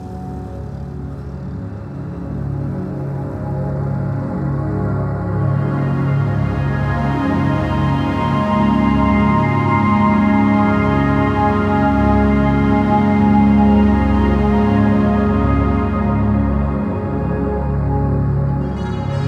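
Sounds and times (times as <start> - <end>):
music: 0.0 - 19.2.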